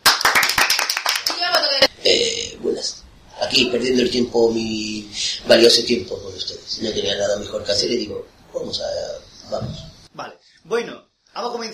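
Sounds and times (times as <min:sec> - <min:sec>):
audience applause: 0:00.0 - 0:01.5
speech: 0:02.0 - 0:11.7.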